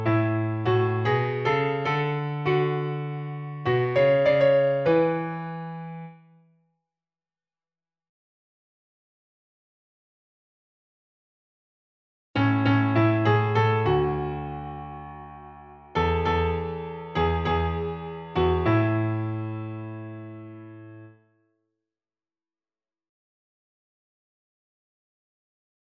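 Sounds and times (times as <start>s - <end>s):
piano: 0.0s - 6.5s, 12.4s - 21.4s.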